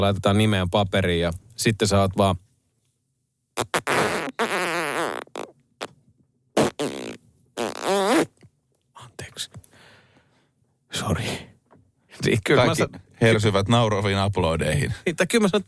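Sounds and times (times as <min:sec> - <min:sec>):
speech: 0:00.0 - 0:02.5, 0:12.5 - 0:15.6
fart noises: 0:03.6 - 0:06.0, 0:06.6 - 0:08.5.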